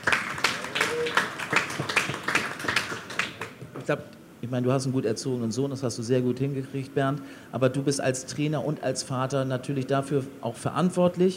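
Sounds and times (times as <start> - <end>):
audience clapping: 0.0 - 3.7
speech: 3.9 - 11.3.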